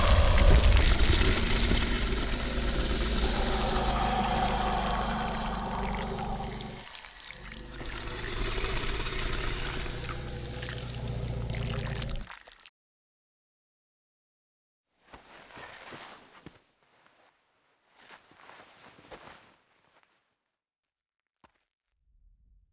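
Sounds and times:
boss monster transforming: 0.0 - 12.3.

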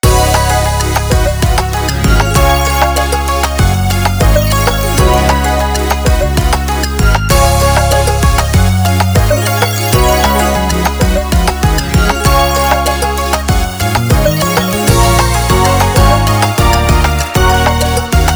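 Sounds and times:
menu background music: 0.0 - 18.3.

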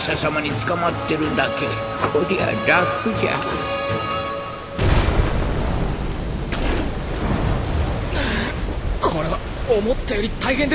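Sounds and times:
speech: 0.0 - 4.2, 9.7 - 10.7
gusting wind in a storm: 0.0 - 10.7
heavy rain in a storm: 0.0 - 10.7
low rumbling undertone: 4.5 - 10.7.

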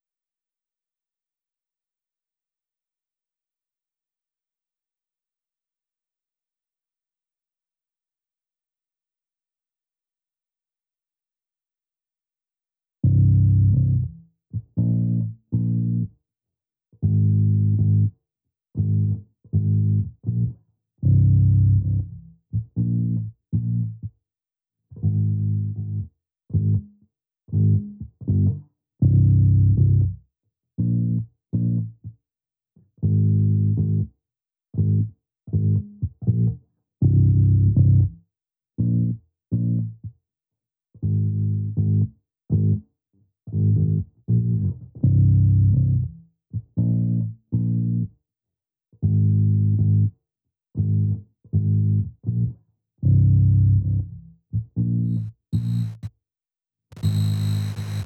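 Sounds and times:
bass: 13.0 - 16.2, 17.0 - 24.2, 24.9 - 32.2, 32.8 - 40.2, 40.9 - 48.2, 49.0 - 56.1, 56.9 - 58.0.

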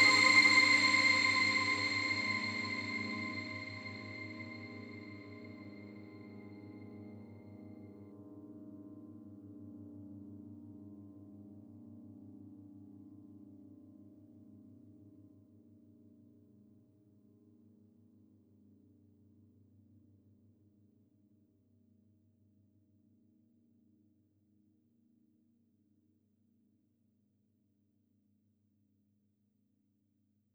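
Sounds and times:
synth pads: 0.0 - 6.4.

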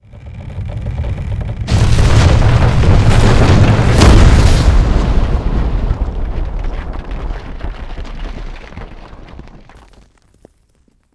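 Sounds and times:
tree crashing down: 1.6 - 10.0.

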